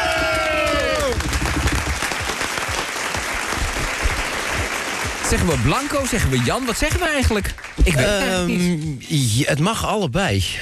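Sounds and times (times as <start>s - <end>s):
studio audience applause: 0.0s - 8.5s
speech: 5.3s - 10.6s.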